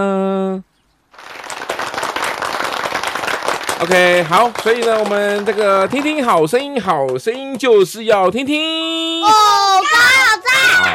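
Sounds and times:
audience applause: 1.2s - 7.2s
speech: 3.8s - 10.9s.

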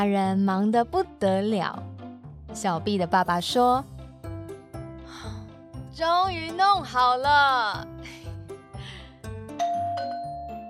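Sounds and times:
speech: 0.0s - 3.9s, 6.0s - 8.2s
doorbell ringing: 9.6s - 10.6s.

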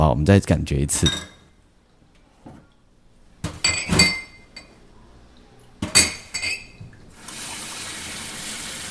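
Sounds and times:
speech: 0.0s - 1.3s
cups clinking while being washed: 3.4s - 4.8s, 5.8s - 7.0s
running tap water: 6.6s - 8.8s.

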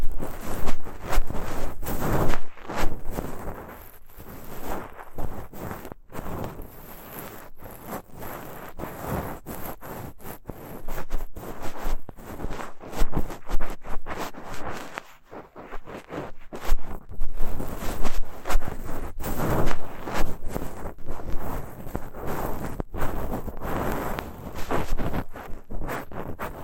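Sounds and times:
ear cleaning with a fluffy bonten and horsehair: 0.0s - 26.6s.

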